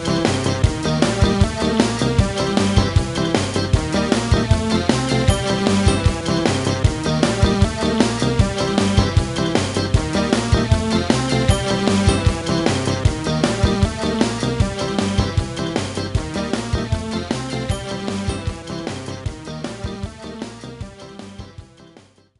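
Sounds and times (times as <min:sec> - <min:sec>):
bumper cars music: 0:00.0 - 0:22.3.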